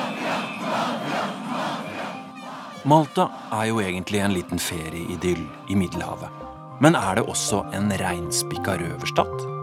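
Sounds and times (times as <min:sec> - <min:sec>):
street protesters shouting and chanting: 0:00.0 - 0:06.8
speech: 0:02.8 - 0:09.5.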